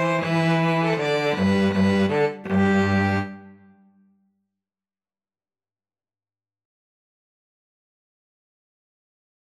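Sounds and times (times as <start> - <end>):
string trio of two violins and cello playing: 0.0 - 3.8.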